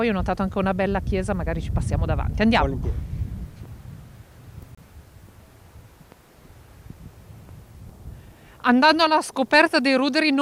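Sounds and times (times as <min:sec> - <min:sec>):
speech: 0:00.0 - 0:03.2, 0:08.7 - 0:10.4
wind buffeting microphone: 0:00.0 - 0:09.8.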